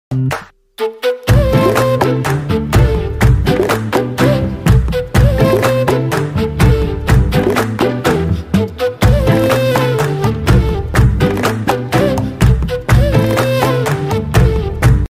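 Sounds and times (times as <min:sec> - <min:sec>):
background music: 0:00.1 - 0:15.1.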